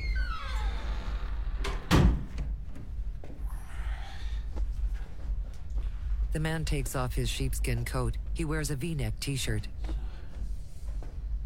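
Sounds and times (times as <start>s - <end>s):
door creak: 0.0s - 2.6s
low hum: 0.0s - 11.4s
door slamming shut: 1.6s - 2.6s
speech: 6.3s - 10.0s.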